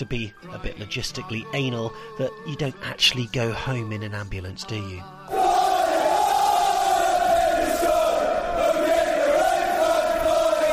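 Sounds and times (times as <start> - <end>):
speech: 0.0 - 5.6
football crowd chanting: 5.3 - 10.7.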